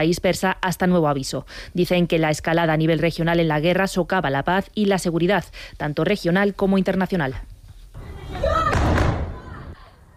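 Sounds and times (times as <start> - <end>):
speech: 0.0 - 7.5
explosion thud from Russian bombing of Kyiv during a missile wave: 8.5 - 9.7.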